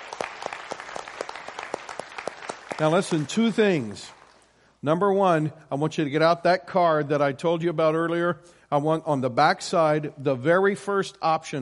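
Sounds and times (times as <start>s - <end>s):
audience applause: 0.0s - 4.4s
speech: 2.8s - 4.2s, 4.8s - 11.6s.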